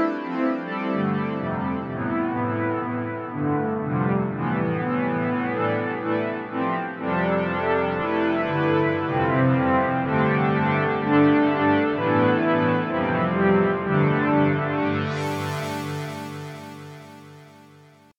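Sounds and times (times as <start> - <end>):
Detroit style synthesizer music: 0.0 - 18.1.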